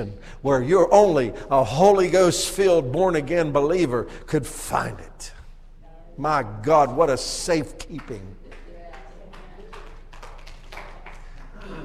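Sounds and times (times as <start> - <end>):
speech: 0.0 - 5.4, 6.2 - 8.4
scattered hand claps: 7.8 - 11.8.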